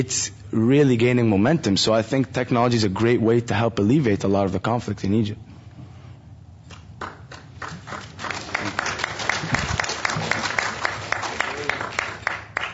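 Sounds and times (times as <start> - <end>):
speech: 0.0 - 5.5
audience applause: 7.0 - 12.7.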